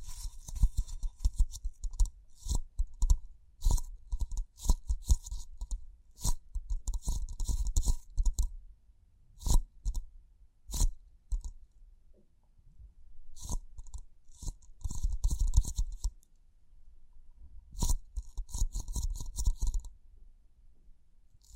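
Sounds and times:
tapping and scratching: 0:00.0 - 0:08.5, 0:13.4 - 0:16.1, 0:17.8 - 0:19.9.

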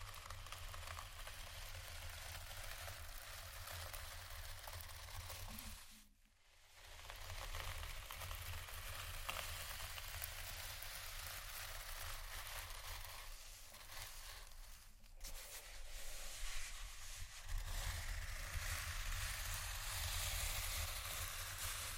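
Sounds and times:
slow deep soft scratching: 0:00.0 - 0:21.9.

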